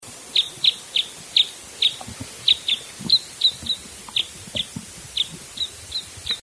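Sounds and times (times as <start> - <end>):
bird chirping: 0.0 - 6.4.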